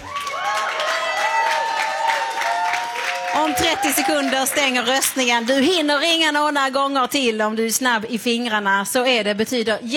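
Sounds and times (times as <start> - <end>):
audience applause: 0.0 - 5.9
speech: 3.6 - 9.9.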